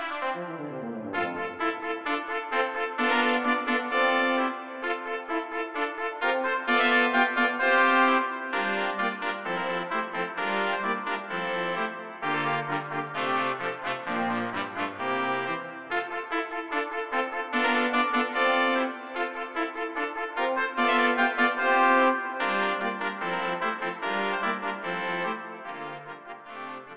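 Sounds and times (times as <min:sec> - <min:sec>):
brass quickstep music: 0:00.1 - 0:26.1.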